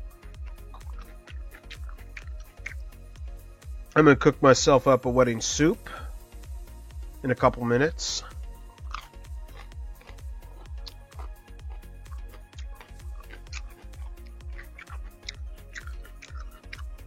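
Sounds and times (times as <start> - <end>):
person munching food: 0.2 - 3.0, 8.3 - 17.0
speech: 4.0 - 6.0, 7.2 - 8.3.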